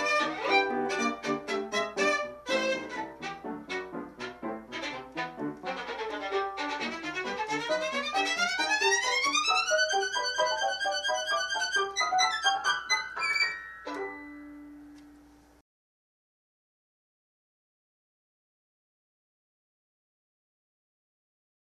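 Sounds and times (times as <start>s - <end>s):
violin: 0.0s - 15.1s.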